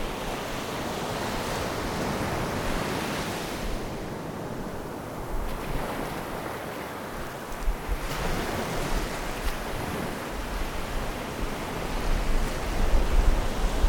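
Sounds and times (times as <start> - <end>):
ocean: 0.0 - 13.8.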